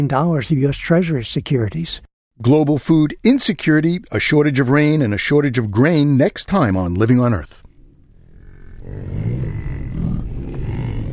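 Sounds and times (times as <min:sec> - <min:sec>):
speech: 0:00.0 - 0:07.6, 0:08.8 - 0:09.6
American bison bellowing: 0:07.8 - 0:11.1.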